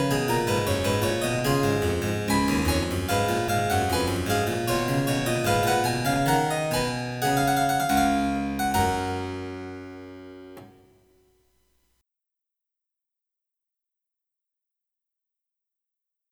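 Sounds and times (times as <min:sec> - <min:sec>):
gavotte from a French suite: 0:00.0 - 0:10.8.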